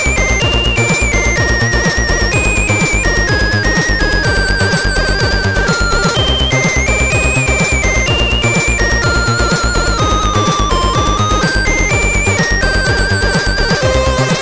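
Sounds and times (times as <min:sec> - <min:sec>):
SID CSG8580R5 chip intro music: 0:00.0 - 0:14.4.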